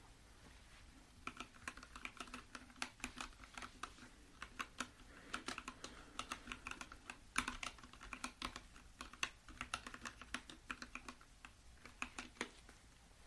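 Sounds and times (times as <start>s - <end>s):
keyboard typing: 1.2s - 12.6s.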